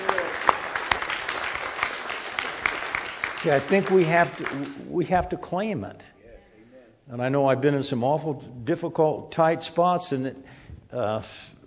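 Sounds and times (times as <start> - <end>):
audience clapping: 0.0 - 5.2
speech: 3.4 - 6.1, 7.1 - 11.6.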